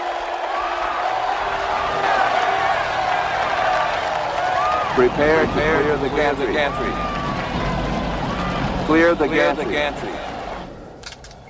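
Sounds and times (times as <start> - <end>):
scattered whoops from the crowd: 0.0 - 5.1, 6.6 - 8.8
large arena crowd cheering and shouting: 0.0 - 10.9
speech: 5.0 - 7.2, 8.9 - 10.2.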